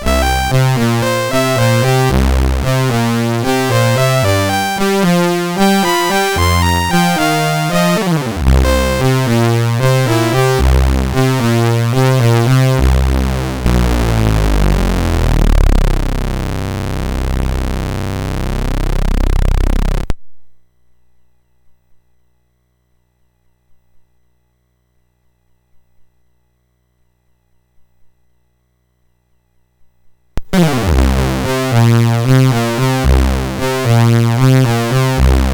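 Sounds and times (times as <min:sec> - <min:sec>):
funk rock chiptune music on MOS6581R4 sound chip: 0:00.0 - 0:20.1, 0:30.4 - 0:35.5.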